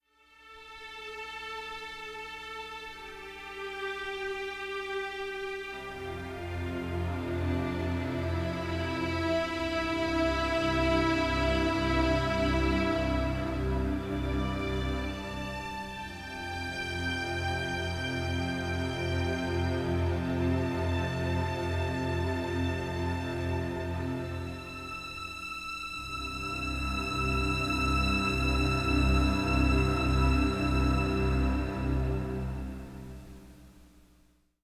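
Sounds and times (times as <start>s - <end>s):
sweet strings: 2.1s - 33.5s.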